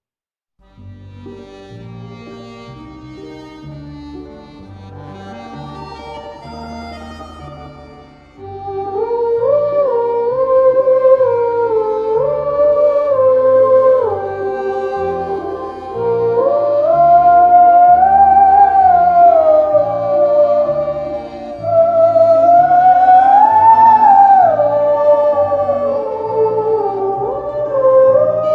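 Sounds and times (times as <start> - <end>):
theremin: 8.4 - 28.5.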